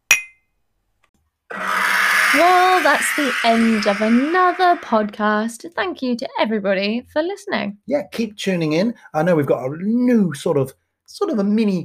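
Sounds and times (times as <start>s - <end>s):
glasses clinking in a toast: 0.1s - 0.4s
speech: 1.5s - 11.8s.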